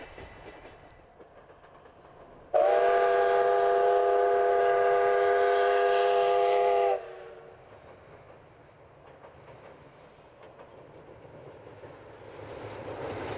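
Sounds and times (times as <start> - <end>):
C11 325 steam locomotive whistle: 2.5 - 7.5.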